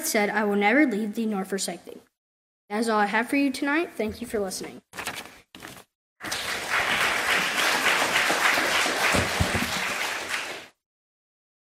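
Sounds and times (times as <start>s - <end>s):
speech: 0.1s - 2.1s, 2.7s - 5.0s
audience applause: 6.2s - 10.8s.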